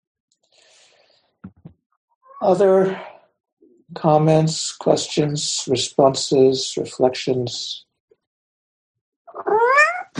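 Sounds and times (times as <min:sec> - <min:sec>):
speech: 0:02.4 - 0:03.1, 0:03.9 - 0:07.8
cat meowing: 0:09.3 - 0:10.1.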